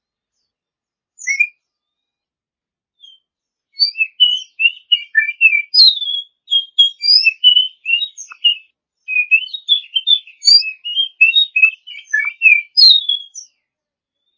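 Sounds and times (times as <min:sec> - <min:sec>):
champion Oriental magpie-robin song: 0:01.2 - 0:01.8, 0:03.0 - 0:13.6.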